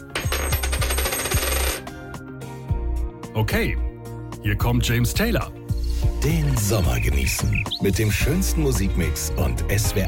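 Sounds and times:
coin being tossed, clattering on a hard surface: 0.0 - 1.9
speech: 3.4 - 10.0.

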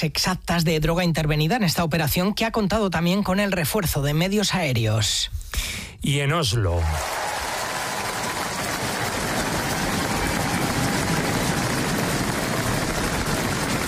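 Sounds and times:
speech: 0.0 - 7.5
crowd applause and ovation for the new king of Norway: 6.7 - 13.8.

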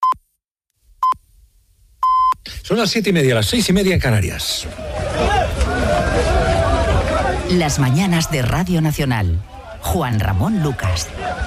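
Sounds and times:
speech: 2.7 - 5.6, 7.5 - 11.4
crowd hubbub with shouts as migrants are evicted from beaches: 4.4 - 11.4.

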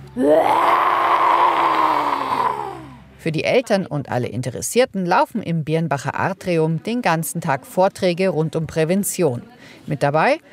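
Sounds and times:
speech: 0.2 - 0.6, 3.2 - 10.5
children imitating a lion's roar: 0.2 - 3.0.

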